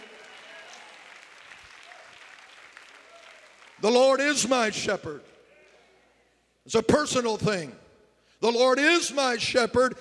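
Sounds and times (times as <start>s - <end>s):
crowd clapping: 0.0s - 4.3s
speech: 3.8s - 5.3s, 6.7s - 7.8s, 8.4s - 9.9s.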